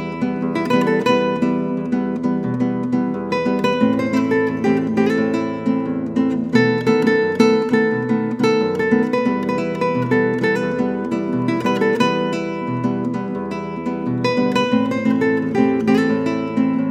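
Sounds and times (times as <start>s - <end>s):
Brazilian guitarist playing guitar: 0.0s - 16.8s.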